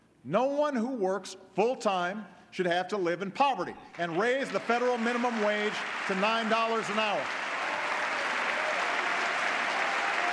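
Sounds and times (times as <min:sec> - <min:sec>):
speech: 0:00.2 - 0:07.4
audience applause: 0:04.0 - 0:10.3.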